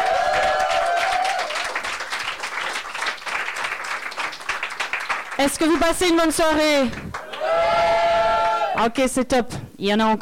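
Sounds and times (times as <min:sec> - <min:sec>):
audience applause: 0:00.0 - 0:06.0, 0:06.9 - 0:08.8
speech: 0:05.4 - 0:07.0, 0:08.8 - 0:10.1.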